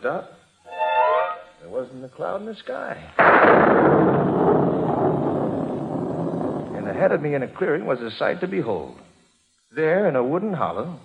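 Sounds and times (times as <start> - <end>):
speech: 0.0 - 0.4, 1.9 - 5.8, 6.8 - 9.1, 9.8 - 11.0
thunder rumbling: 3.2 - 8.0.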